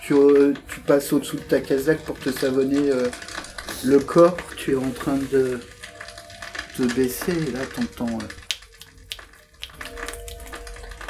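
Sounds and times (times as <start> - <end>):
speech: 0.1 - 5.7, 6.8 - 8.4
hand claps: 8.4 - 10.6.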